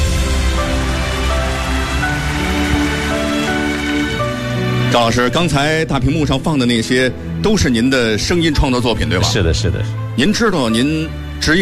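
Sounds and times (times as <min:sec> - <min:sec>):
audience applauding loudly welcoming a guest: 0:00.0 - 0:05.0
speech: 0:04.9 - 0:11.6.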